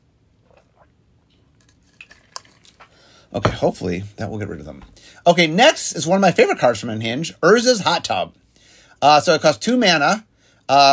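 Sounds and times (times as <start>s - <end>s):
person taking a sip of water: 0.3s - 3.0s
speech: 3.3s - 8.4s, 9.0s - 10.9s.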